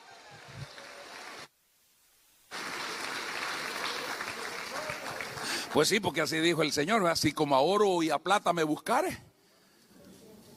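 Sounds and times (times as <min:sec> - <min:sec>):
audience applause: 0:00.0 - 0:01.5, 0:02.5 - 0:06.1
speech: 0:05.7 - 0:09.3.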